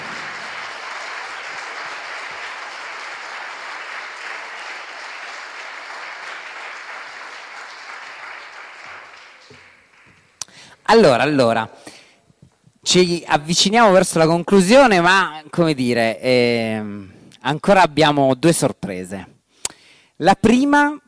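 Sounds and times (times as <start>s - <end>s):
audience applause: 0.0s - 10.4s
speech: 10.9s - 12.0s, 12.9s - 19.3s, 20.2s - 21.0s.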